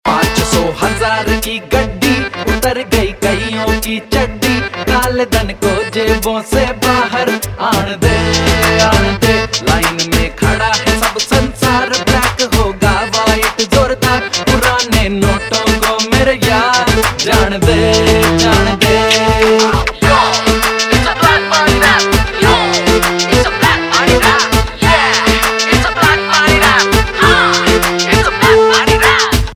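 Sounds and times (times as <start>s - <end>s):
rap ringtone: 0.1s - 29.5s.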